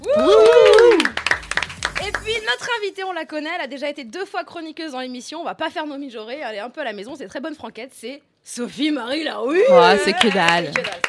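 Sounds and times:
audience applause: 0.0s - 2.4s, 9.8s - 11.0s
speech: 2.5s - 11.0s.

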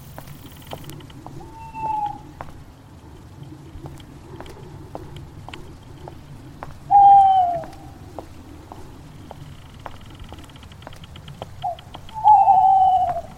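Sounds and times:
faint ticks: 0.0s - 6.9s, 7.5s - 13.3s
low steady rumble: 0.0s - 13.3s
drawn-out whining animal calls: 1.4s - 2.4s, 6.9s - 8.0s, 11.6s - 13.3s.

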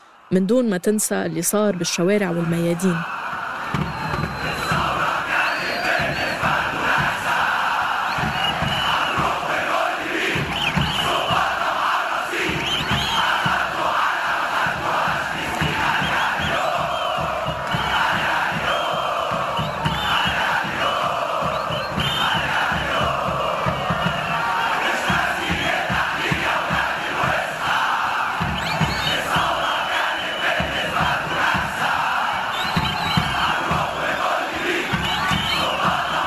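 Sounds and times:
football ultras chanting in stadium stands: 0.0s - 36.2s
speech: 0.3s - 3.2s.

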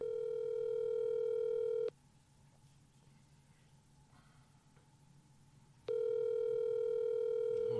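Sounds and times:
ringback tone of an outgoing phone call: 0.0s - 1.9s, 5.9s - 7.7s.

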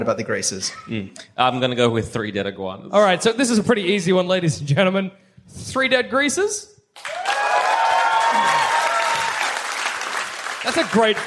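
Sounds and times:
speech: 0.0s - 7.2s, 10.6s - 11.2s
crowd clapping: 7.0s - 11.2s
people letting out long rising woo cheers: 7.0s - 11.2s.

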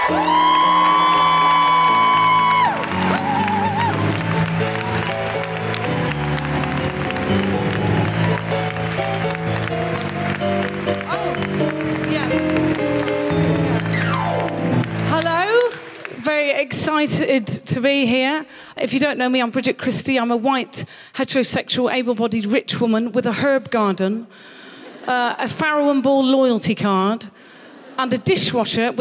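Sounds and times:
audience applause at a live comedy event: 0.0s - 16.5s
speech: 0.1s - 0.5s, 17.3s - 27.3s, 28.0s - 29.0s.

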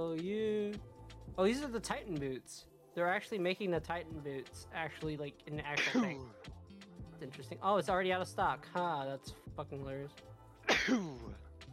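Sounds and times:
speech: 0.0s - 6.6s, 7.2s - 11.4s
person sneezing: 5.8s - 6.3s, 10.7s - 11.3s.

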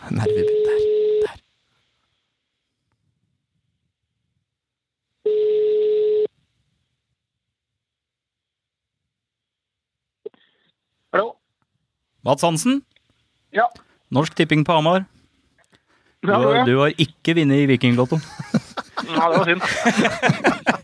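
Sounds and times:
speech: 0.1s - 0.8s, 12.3s - 12.9s, 13.5s - 15.2s, 16.2s - 20.8s
telephone ringback tone during a phone call: 0.2s - 1.2s, 5.3s - 6.3s
laughter: 17.9s - 20.8s.

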